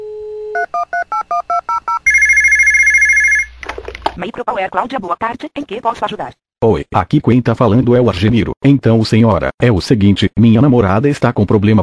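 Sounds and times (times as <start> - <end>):
phone dialing beeps: 0.6 - 3.5
warbling ring tone of a call to Micro Power: 1.8 - 3.5
speech: 4.2 - 11.8.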